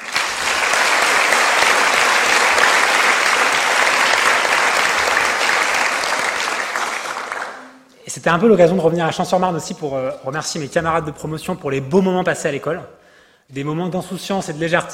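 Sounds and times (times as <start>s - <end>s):
audience applause: 0.0s - 7.7s
speech: 8.2s - 14.9s.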